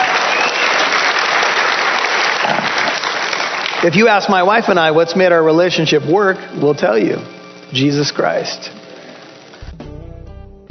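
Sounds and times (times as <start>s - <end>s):
crowd applauding: 0.0s - 4.7s
speech: 3.8s - 8.8s.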